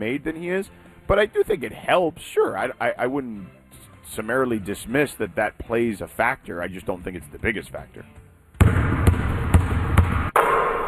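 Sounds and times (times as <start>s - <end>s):
speech: 0.0s - 8.2s
basketball dribbled: 8.6s - 10.8s.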